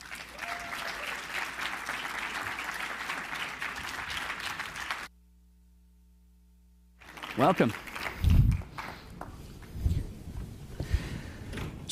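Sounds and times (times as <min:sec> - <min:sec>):
audience clapping at a Canada Strong and Free Network event: 0:00.0 - 0:05.1, 0:07.0 - 0:09.8
speech: 0:07.4 - 0:07.9.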